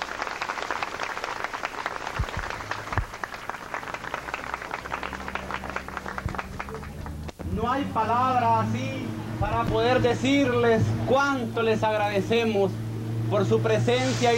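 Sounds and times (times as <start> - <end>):
warm audience applause: 0.0 - 7.4
speech: 7.6 - 14.3.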